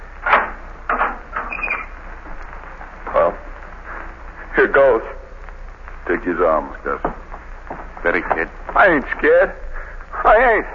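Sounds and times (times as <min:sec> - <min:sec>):
prison cell door being unlocked, radio drama effect: 0:00.2 - 0:01.9
speech: 0:04.6 - 0:05.2, 0:06.1 - 0:07.2, 0:08.0 - 0:09.6, 0:10.3 - 0:10.7.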